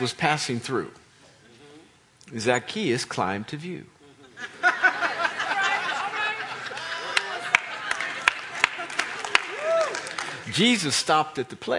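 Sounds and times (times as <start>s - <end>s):
speech: 0.0s - 1.0s, 2.3s - 4.6s, 10.5s - 11.7s
laughter: 4.2s - 10.3s
audience clapping: 6.6s - 10.9s.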